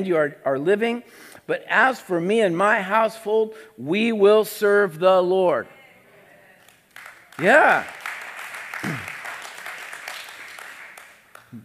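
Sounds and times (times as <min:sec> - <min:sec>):
speech: 0:00.0 - 0:05.8, 0:07.4 - 0:08.0
audience applause: 0:07.0 - 0:11.6.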